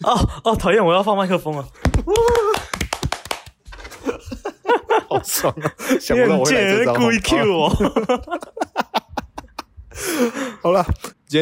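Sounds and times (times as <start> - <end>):
speech: 0.0 - 2.6, 5.2 - 8.7, 10.0 - 11.4
hand clapping: 1.8 - 3.6
laughter: 3.8 - 10.5.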